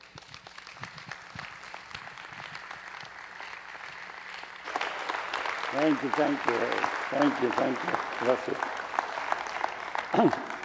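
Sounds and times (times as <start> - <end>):
audience applause welcoming a guest: 0.0 - 10.6
speech: 5.8 - 8.8, 10.2 - 10.5.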